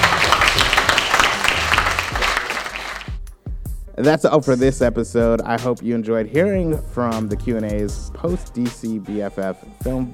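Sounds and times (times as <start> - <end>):
audience applause: 0.0 - 3.2
speech: 4.0 - 10.1.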